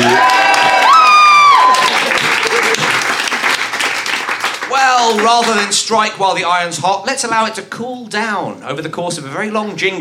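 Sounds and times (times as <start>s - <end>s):
audience applauding and cheering: 0.0s - 5.9s
speech: 5.3s - 9.9s.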